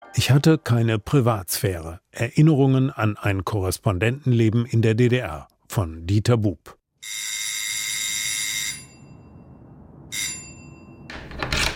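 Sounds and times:
speech: 0.2s - 7.3s
doorbell ringing: 7.0s - 11.6s.

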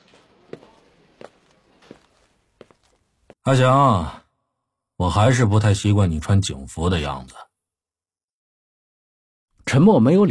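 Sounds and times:
footsteps walking into an interrogation room: 0.0s - 3.4s
speech: 3.4s - 4.2s, 5.0s - 7.5s, 9.7s - 10.2s.

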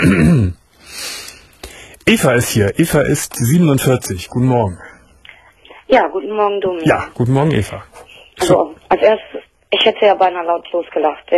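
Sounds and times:
throaty voiced clearing of the throat: 0.0s - 0.6s
speech: 2.1s - 4.9s, 5.9s - 11.3s.

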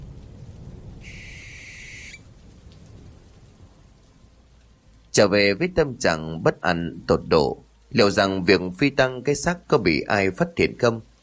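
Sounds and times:
barn owl giving mournful cries: 1.0s - 2.2s
speech: 5.2s - 11.1s.

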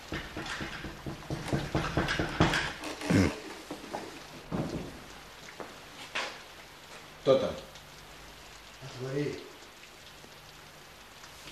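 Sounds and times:
knocking on a door: 0.1s - 2.7s, 4.5s - 5.0s
speech: 7.3s - 7.7s, 9.0s - 9.5s.

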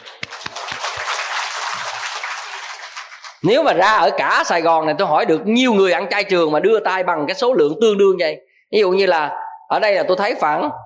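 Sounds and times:
audience applause at a talk: 0.0s - 3.4s
speech: 3.4s - 10.8s.

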